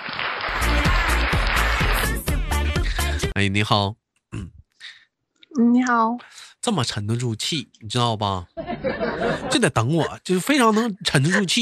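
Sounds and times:
crowd applause: 0.0s - 2.9s
speech: 3.4s - 4.6s, 5.6s - 11.6s
laughter: 8.6s - 11.6s.

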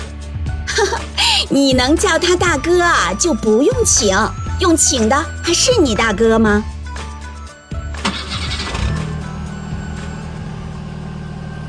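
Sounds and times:
speech: 0.8s - 6.7s
car engine cranking and idling: 7.7s - 11.6s.

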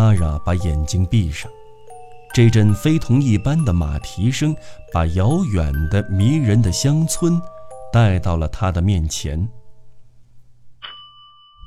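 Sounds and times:
speech: 0.0s - 1.6s, 2.4s - 9.6s
doorbell ringing: 0.0s - 8.3s, 10.8s - 11.6s.

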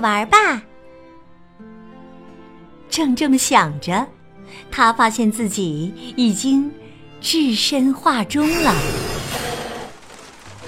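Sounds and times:
speech: 0.0s - 0.7s, 2.9s - 9.1s
rain falling: 8.4s - 10.6s.

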